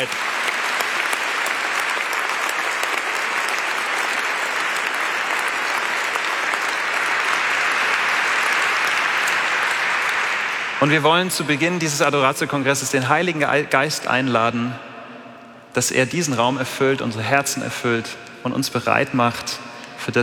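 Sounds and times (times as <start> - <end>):
audience applause: 0.0 - 11.9
speech: 10.8 - 14.9, 15.8 - 20.2.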